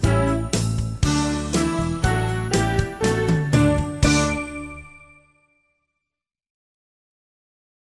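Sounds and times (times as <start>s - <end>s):
fast song: 0.0s - 5.2s.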